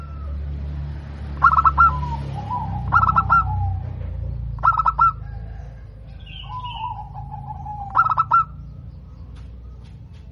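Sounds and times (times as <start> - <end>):
zebra dove cooing with stuttering pulsed notes: 1.4 - 9.6.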